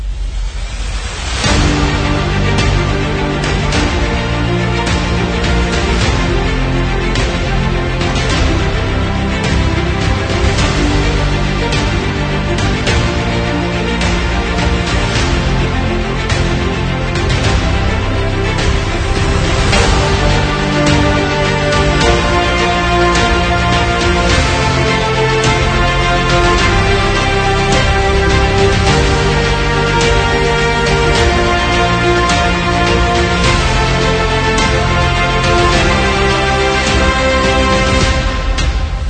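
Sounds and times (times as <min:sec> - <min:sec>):
epic music: 0:00.0 - 0:39.0.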